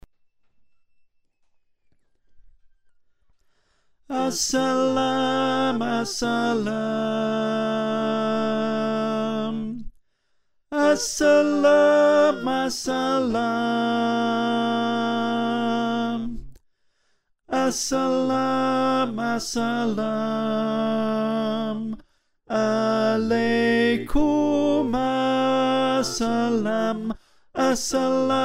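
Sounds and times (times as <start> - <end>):
tenor singing: 4.1 - 9.8, 10.7 - 16.4, 17.5 - 28.4.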